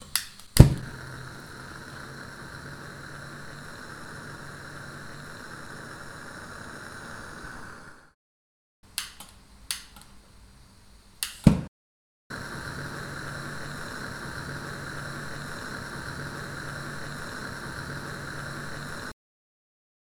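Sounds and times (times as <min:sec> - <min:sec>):
lit gas lantern burning: 0:00.1 - 0:08.2, 0:12.3 - 0:19.1.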